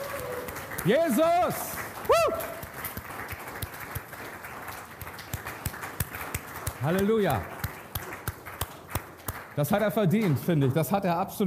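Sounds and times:
large crowd applauding: 0:00.0 - 0:10.9
speech: 0:00.8 - 0:02.5, 0:06.8 - 0:07.5, 0:09.6 - 0:11.4
rising-and-falling whistle or whoop: 0:02.1 - 0:02.6.

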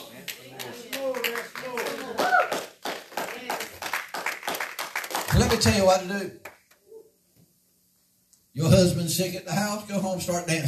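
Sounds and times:
crowd clapping hands in praise: 0:00.0 - 0:06.8
speech: 0:05.4 - 0:06.5, 0:08.6 - 0:10.6.

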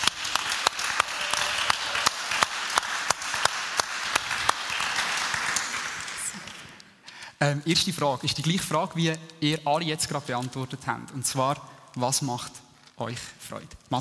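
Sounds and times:
audience applause: 0:00.0 - 0:06.8
speech: 0:07.4 - 0:13.9.

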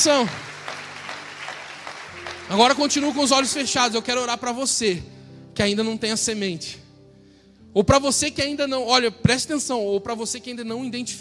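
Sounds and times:
speech: 0:00.0 - 0:00.4, 0:02.5 - 0:06.8, 0:07.7 - 0:11.2
audience applauding: 0:00.0 - 0:04.3.

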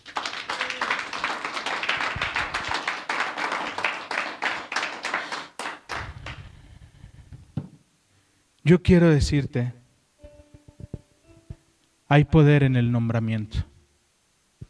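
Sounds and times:
audience applause: 0:00.0 - 0:06.5
speech: 0:08.7 - 0:09.8, 0:12.1 - 0:13.7.

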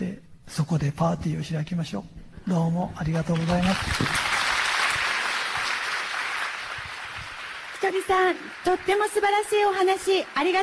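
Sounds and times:
speech: 0:00.5 - 0:04.3, 0:08.0 - 0:10.6
audience applause: 0:03.3 - 0:10.6.

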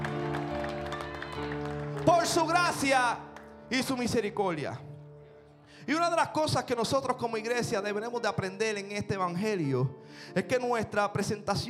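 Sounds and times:
audience applauding: 0:00.0 - 0:03.6
speech: 0:02.0 - 0:04.9, 0:05.8 - 0:11.6.

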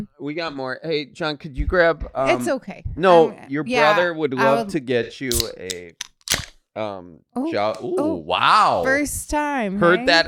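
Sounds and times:
speech: 0:00.0 - 0:06.0, 0:06.8 - 0:10.2
aluminum can being crumpled: 0:05.3 - 0:06.6.

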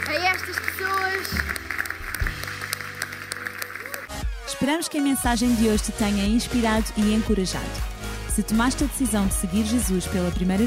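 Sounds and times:
audience applause: 0:00.0 - 0:04.1
speech: 0:04.6 - 0:10.6.

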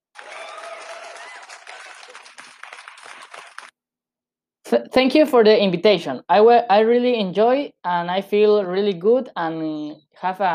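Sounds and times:
applause: 0:00.0 - 0:03.7
speech: 0:04.7 - 0:10.5.

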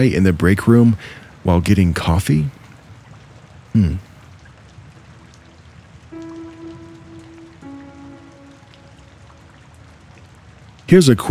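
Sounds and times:
speech: 0:00.0 - 0:02.6, 0:03.7 - 0:04.1, 0:10.9 - 0:11.2
steady rain pattering on a surface: 0:00.0 - 0:11.2
faint sustained tones: 0:06.1 - 0:10.5.

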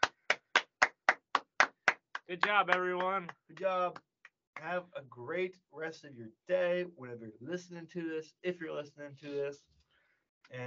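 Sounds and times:
hosts clapping hands: 0:00.0 - 0:04.8
speech: 0:02.3 - 0:09.8, 0:10.5 - 0:10.6.

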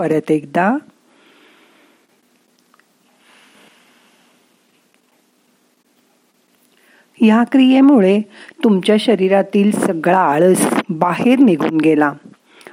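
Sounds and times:
speech: 0:00.0 - 0:00.9, 0:07.2 - 0:12.3
deep breathing during a guided breathing exercise: 0:01.1 - 0:02.2, 0:03.1 - 0:04.6.

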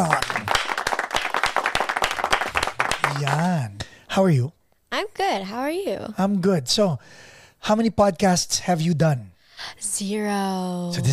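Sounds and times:
audience applause and clapping: 0:00.0 - 0:03.6
speech: 0:04.2 - 0:11.1.

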